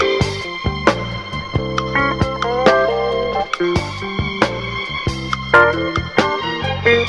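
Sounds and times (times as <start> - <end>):
strings: 0.0 - 7.0.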